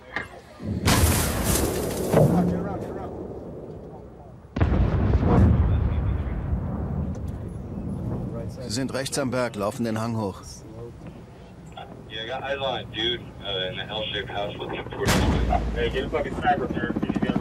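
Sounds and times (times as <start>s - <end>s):
artillery section firing: 0.6s - 3.7s, 4.5s - 8.3s, 15.0s - 16.1s
speech: 8.8s - 10.6s, 12.3s - 17.4s.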